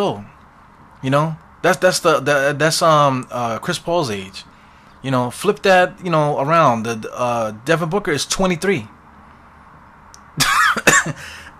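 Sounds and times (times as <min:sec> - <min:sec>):
speech: 0:00.0 - 0:00.3, 0:01.0 - 0:09.0
person coughing from choking on saliva: 0:10.4 - 0:11.5.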